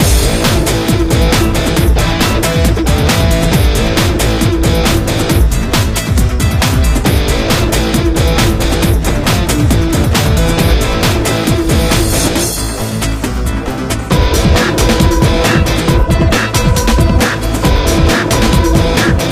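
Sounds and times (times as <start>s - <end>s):
drum breaks: 0.0s - 19.3s.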